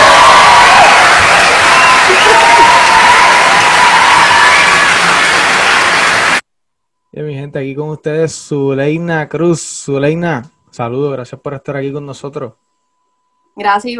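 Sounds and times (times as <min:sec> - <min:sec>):
audience applause and cheering: 0:00.0 - 0:06.4
speech: 0:07.6 - 0:12.6, 0:13.6 - 0:13.9.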